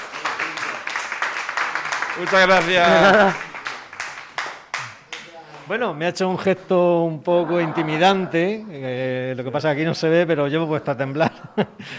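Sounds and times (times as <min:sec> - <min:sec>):
audience applause: 0:00.0 - 0:05.7
speech: 0:02.2 - 0:03.5, 0:05.7 - 0:11.9
laughter: 0:02.2 - 0:03.6, 0:07.3 - 0:08.9, 0:10.8 - 0:11.9.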